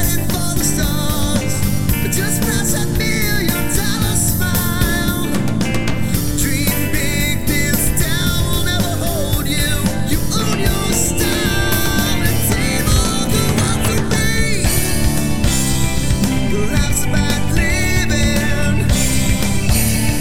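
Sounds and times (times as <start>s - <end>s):
acoustic harmony karaoke full mix: 0.0s - 20.2s.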